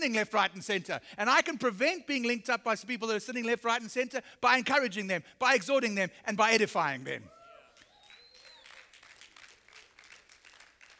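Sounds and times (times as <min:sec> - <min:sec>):
speech: 0:00.0 - 0:07.4
crowd golf clap: 0:07.7 - 0:10.9.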